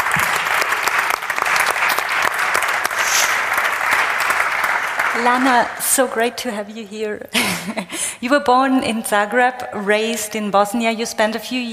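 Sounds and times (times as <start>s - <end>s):
room full of people clapping: 0.0s - 6.4s
speech: 5.2s - 11.7s
laughter: 7.3s - 8.0s.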